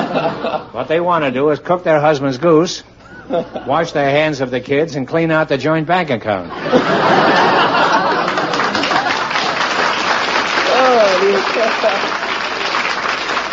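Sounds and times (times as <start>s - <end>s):
laughter: 0.0s - 0.8s, 3.1s - 3.8s, 6.5s - 12.8s
speech: 0.7s - 7.6s
audience applauding: 7.2s - 13.5s.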